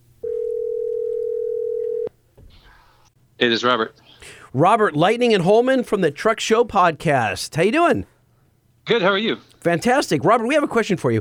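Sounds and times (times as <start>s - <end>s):
telephone dial tone: 0.2s - 2.1s
speech: 3.4s - 8.1s, 8.8s - 11.2s.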